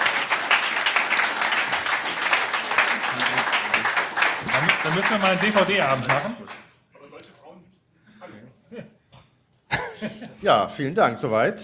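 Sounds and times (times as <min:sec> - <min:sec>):
audience applause: 0:00.0 - 0:06.8
speech: 0:04.9 - 0:06.6, 0:10.4 - 0:11.6.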